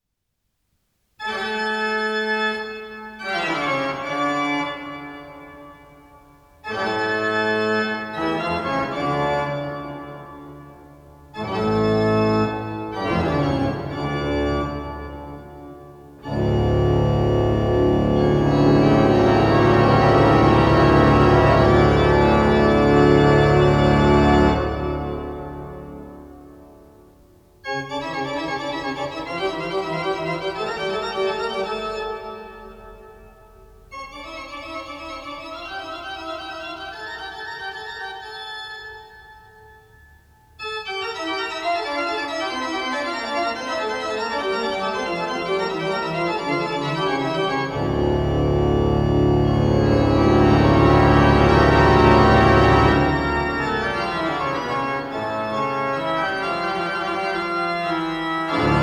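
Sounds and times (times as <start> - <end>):
great organ music: 1.2 - 58.8.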